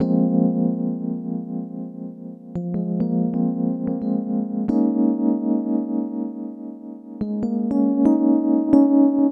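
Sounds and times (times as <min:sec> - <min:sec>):
keyboard: 0:00.0 - 0:09.3.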